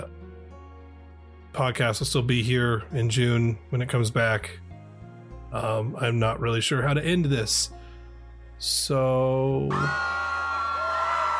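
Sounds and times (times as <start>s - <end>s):
speech: 1.5s - 4.6s, 5.5s - 7.8s, 8.6s - 10.2s
background scream during an April Fool's episode: 9.7s - 11.3s.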